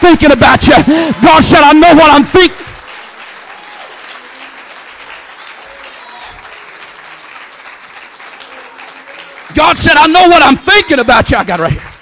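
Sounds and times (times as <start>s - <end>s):
speech: 0.1s - 2.6s, 9.6s - 11.9s
audience clapping: 0.2s - 12.0s.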